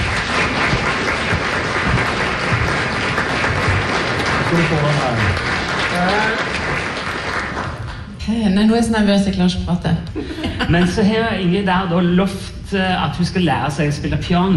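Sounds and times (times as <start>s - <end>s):
audience applause: 0.0s - 8.1s
speech: 4.5s - 6.6s, 8.3s - 14.5s
laughter: 10.2s - 11.3s.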